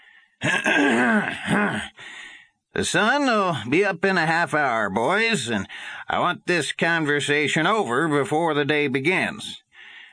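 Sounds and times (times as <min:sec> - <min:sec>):
speech: 0:00.4 - 0:01.9, 0:02.8 - 0:09.6
man clearing his throat in a bunkhouse to get attention: 0:00.4 - 0:02.0.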